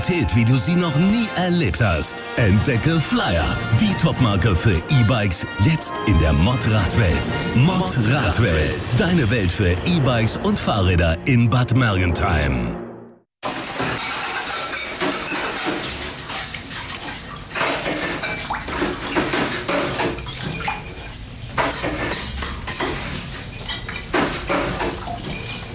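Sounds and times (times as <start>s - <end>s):
speech: 0.0s - 12.8s
washing dishes, clattering pots: 13.5s - 25.7s.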